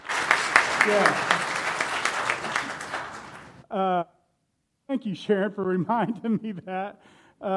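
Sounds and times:
audience applause: 0.0 - 3.6
speech: 0.8 - 1.3, 3.7 - 4.2, 4.9 - 7.5.

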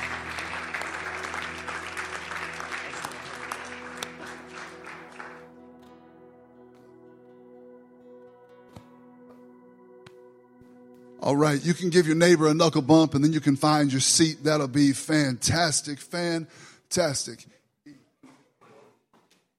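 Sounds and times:
audience hand clapping applause: 0.0 - 5.9
speech: 11.2 - 17.6.

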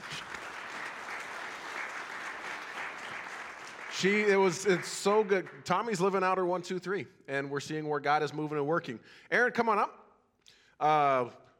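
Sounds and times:
audience applause: 0.0 - 5.6
speech: 4.0 - 10.0, 10.8 - 11.4.

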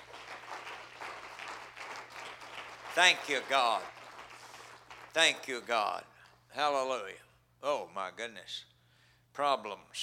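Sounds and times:
church congregation clapping hands in worship: 0.0 - 6.4
speech: 3.0 - 4.0, 5.2 - 8.7, 9.4 - 10.0.

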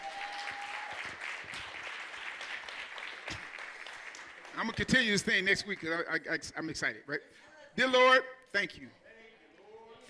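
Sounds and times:
audience clapping: 0.0 - 6.1
speech: 4.6 - 9.0.

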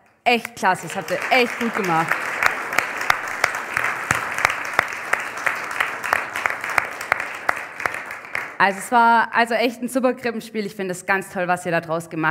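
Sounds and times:
speech: 0.2 - 2.3, 8.6 - 12.2
audience applause: 0.5 - 9.0.

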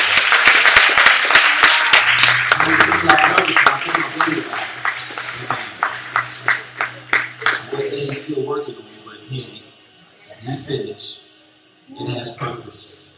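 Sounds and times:
crowd clapping hands: 0.0 - 8.3.

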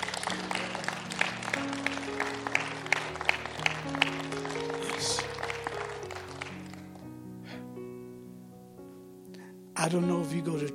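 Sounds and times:
audience hand clapping: 0.0 - 7.2
speech: 9.8 - 10.7.

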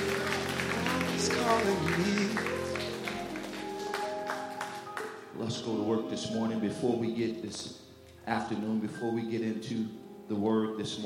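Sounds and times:
people clapping hands: 0.0 - 6.5
speech: 1.2 - 2.6, 5.5 - 11.0.

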